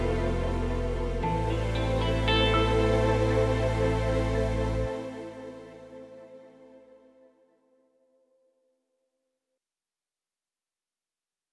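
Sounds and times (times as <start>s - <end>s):
dramatic guitar: 0.0s - 5.5s.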